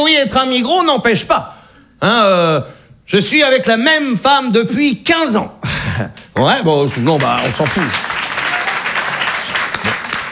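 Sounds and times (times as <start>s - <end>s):
speech: 0.0s - 8.1s
audience applause: 6.2s - 10.3s.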